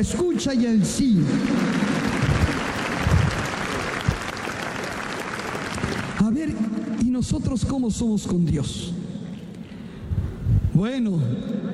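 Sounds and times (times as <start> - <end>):
speech: 0.0 - 1.9, 6.2 - 9.0, 10.8 - 11.7
audience applause: 0.9 - 7.0.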